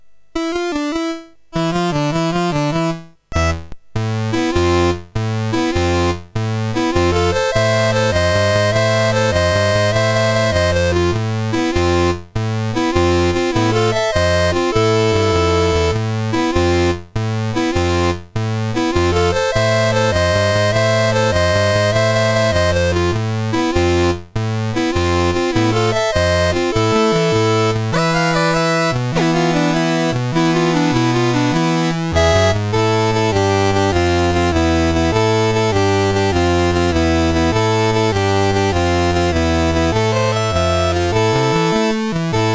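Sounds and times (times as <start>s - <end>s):
chiptune music on MOS6581 chip: 0.3s - 42.5s.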